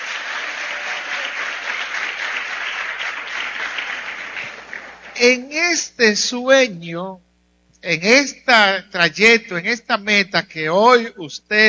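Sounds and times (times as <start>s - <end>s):
audience clapping: 0.0s - 5.4s
speech: 5.2s - 7.2s, 7.8s - 11.6s.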